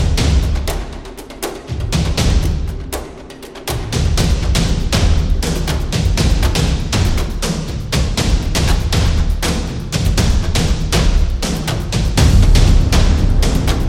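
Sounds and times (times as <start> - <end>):
epic action tribal drums: 0.0 - 13.8.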